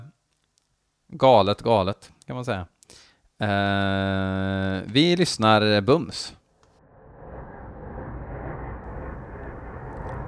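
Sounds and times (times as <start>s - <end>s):
speech: 1.2s - 6.4s
airplane engine roar in song intro: 7.0s - 10.2s.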